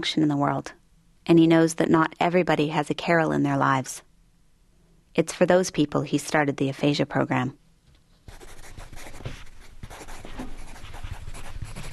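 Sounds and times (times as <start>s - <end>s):
speech: 0.0s - 4.1s, 5.2s - 7.6s
pen scratching on paper writing a name: 8.3s - 11.9s.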